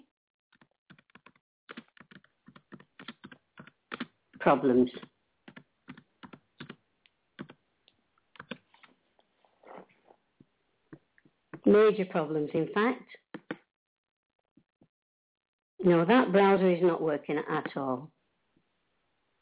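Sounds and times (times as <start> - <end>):
typing on computer keyboard: 0.5 - 4.1, 5.0 - 6.8, 7.4 - 7.6, 8.4 - 8.6, 13.4 - 13.6
speech: 4.4 - 5.1, 11.7 - 13.2, 15.9 - 18.2.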